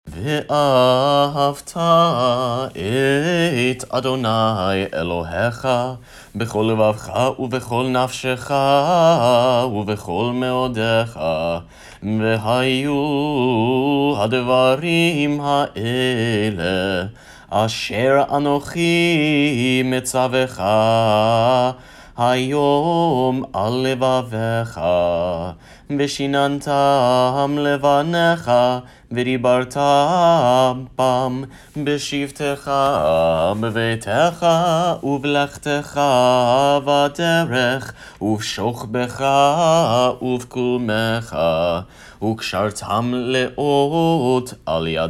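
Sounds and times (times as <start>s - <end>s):
prayer chanting: 0.1s - 45.0s.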